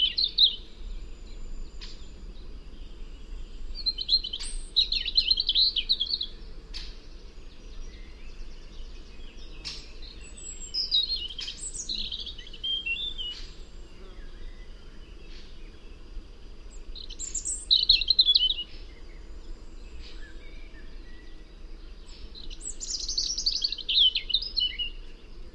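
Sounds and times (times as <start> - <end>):
European robin singing: 0.0 - 2.1, 3.8 - 6.4, 7.8 - 13.6, 16.7 - 19.1, 22.0 - 25.0.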